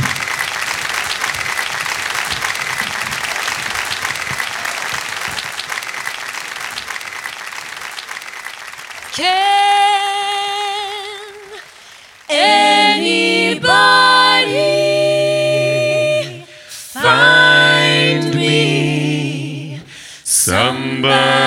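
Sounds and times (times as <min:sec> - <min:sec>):
audience applause welcoming a vocal group at a live show: 0:00.0 - 0:13.0
person singing: 0:09.2 - 0:11.6, 0:12.3 - 0:21.4.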